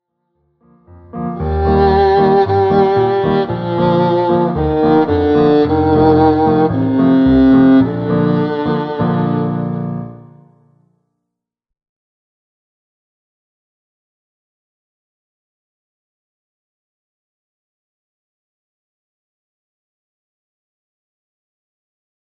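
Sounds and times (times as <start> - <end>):
bossa nova on C strings: 1.2 - 10.3.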